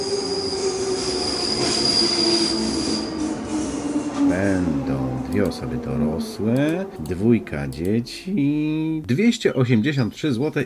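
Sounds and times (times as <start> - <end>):
high-pitched train wheel squeal: 0.0 - 4.8
train rumbling on rails: 0.0 - 8.8
speech: 5.4 - 10.6.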